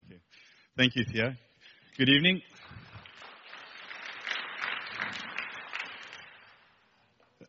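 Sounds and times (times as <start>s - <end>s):
speech: 0.8s - 1.4s, 2.0s - 2.5s
crowd clapping: 1.9s - 7.2s.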